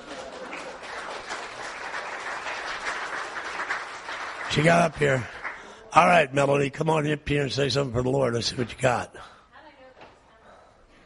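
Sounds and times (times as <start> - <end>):
audience cheering and applauding: 0.0 - 6.2
speech: 4.5 - 5.4, 6.0 - 9.3.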